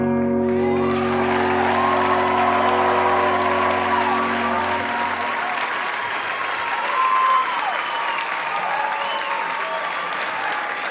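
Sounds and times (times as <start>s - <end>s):
crowd applauding: 0.2s - 10.8s
whoops and cheers: 0.4s - 10.8s
sustained musical chord: 0.5s - 5.9s.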